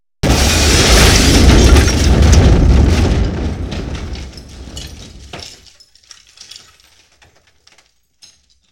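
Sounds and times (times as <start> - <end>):
explosion: 0.2 - 5.6.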